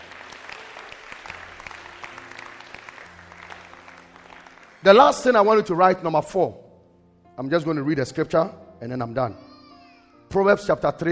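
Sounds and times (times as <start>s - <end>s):
audience clapping: 0.0s - 5.8s
speech: 4.8s - 6.6s, 7.4s - 9.4s, 10.3s - 11.0s.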